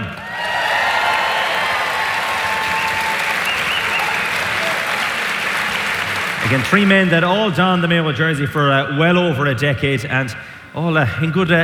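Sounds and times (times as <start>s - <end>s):
audience applause: 0.0s - 7.4s
speech: 6.5s - 11.6s.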